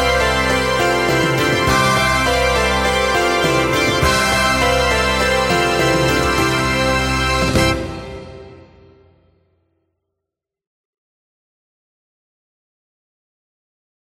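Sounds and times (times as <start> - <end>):
bells ringing: 0.0 - 8.0.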